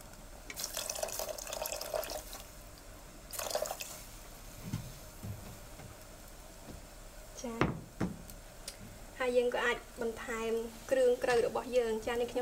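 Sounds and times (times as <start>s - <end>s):
water poured into a pot of cooking food: 0.5s - 2.6s, 3.3s - 4.2s
speech: 9.3s - 12.4s.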